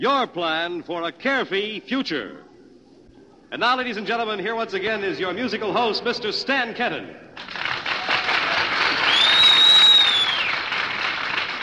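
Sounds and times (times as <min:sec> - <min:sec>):
speech: 0:00.0 - 0:02.5, 0:03.5 - 0:07.6
audience applause: 0:07.4 - 0:11.6
faint high whistle: 0:09.0 - 0:10.6.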